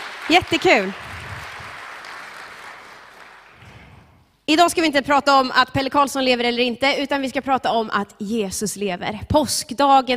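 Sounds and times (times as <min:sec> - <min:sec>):
crowd applauding: 0:00.0 - 0:04.1
speech: 0:00.3 - 0:01.1, 0:04.5 - 0:10.1.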